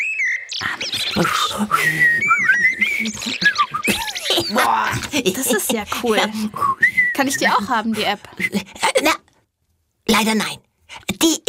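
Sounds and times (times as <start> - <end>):
person whistling imitation of blackbird song: 0.0 - 4.2, 6.6 - 7.7
soft noise: 0.0 - 11.4
laughter: 0.6 - 6.5
speech: 0.6 - 9.2, 10.2 - 10.6.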